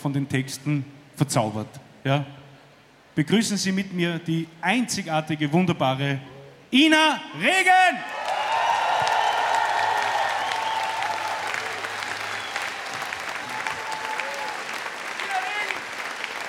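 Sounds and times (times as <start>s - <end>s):
speech: 0.0s - 2.4s, 3.2s - 8.2s
audience applause: 8.1s - 16.4s.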